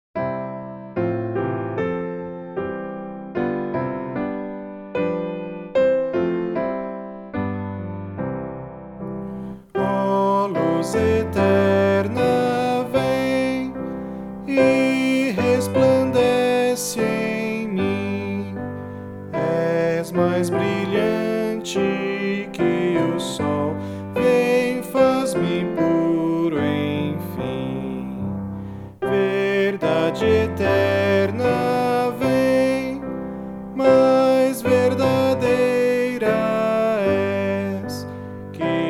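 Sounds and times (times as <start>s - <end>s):
piano: 0.0s - 38.8s
person singing: 9.4s - 38.8s.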